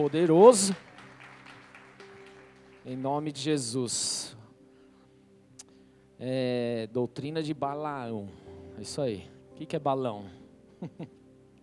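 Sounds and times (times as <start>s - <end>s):
speech: 0.0s - 0.9s, 2.8s - 4.4s, 6.2s - 11.2s
audience applause: 0.0s - 3.7s
laughter: 10.8s - 11.2s.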